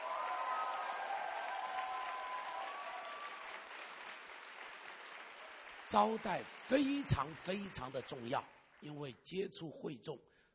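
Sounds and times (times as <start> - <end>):
voices cheering: 0.0 - 3.8
audience applauding: 0.0 - 9.1
speech: 5.9 - 10.3.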